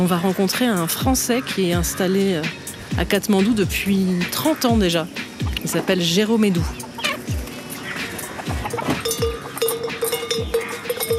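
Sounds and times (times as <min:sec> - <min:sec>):
speech: 0:00.0 - 0:06.9
small old-fashioned bell on a gate: 0:08.8 - 0:11.1.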